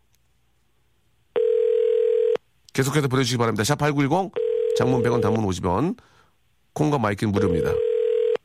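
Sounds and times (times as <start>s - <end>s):
telephone dial tone: 1.4s - 2.4s, 4.4s - 5.3s, 7.5s - 8.4s
speech: 2.8s - 6.2s, 6.8s - 7.9s.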